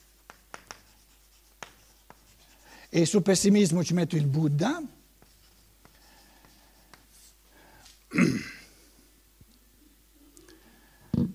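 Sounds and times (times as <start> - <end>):
writing on a board during a lecture: 0.0 - 2.7, 5.2 - 7.4
speech: 2.9 - 5.0.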